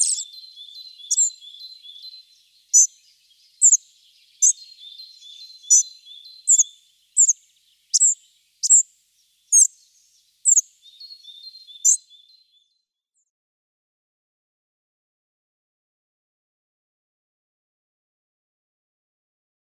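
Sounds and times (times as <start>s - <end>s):
Spotted Flycatcher singing: 0.0s - 12.9s.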